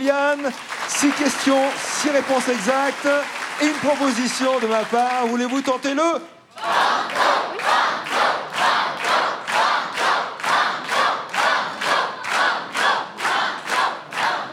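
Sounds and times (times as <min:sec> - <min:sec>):
speech: 0:00.0 - 0:07.2
audience on a French TV quiz clapping: 0:00.0 - 0:14.5
audience on a French TV quiz chanting: 0:06.5 - 0:14.5.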